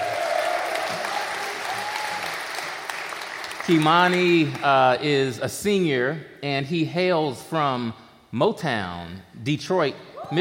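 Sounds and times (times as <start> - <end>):
audience clapping: 0.0 - 5.0
speech: 3.7 - 10.3.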